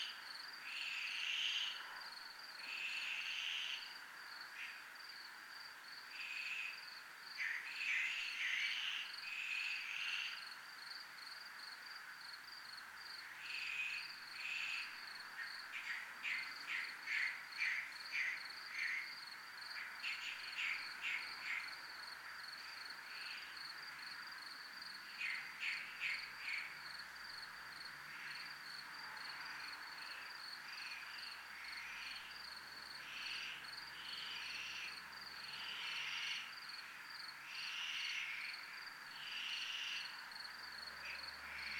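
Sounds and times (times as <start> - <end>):
cricket chirping: 0.0 - 41.7.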